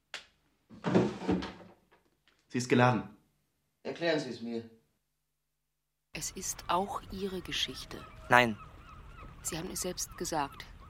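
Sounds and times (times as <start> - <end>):
drawer being pulled open: 0.7 - 1.7
speech: 2.5 - 3.2, 3.9 - 4.8, 6.2 - 8.7, 9.4 - 10.7.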